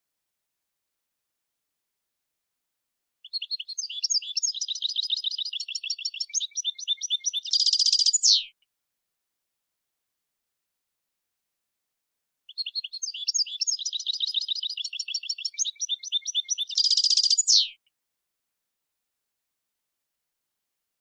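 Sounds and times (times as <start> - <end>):
European goldfinch twittering: 3.3 - 8.5, 12.5 - 17.8.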